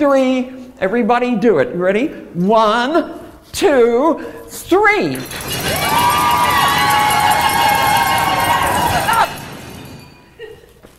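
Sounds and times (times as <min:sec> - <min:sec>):
speech: 0:00.0 - 0:06.6
audience shouting and making noise: 0:05.2 - 0:10.0
high whoops: 0:05.6 - 0:09.4.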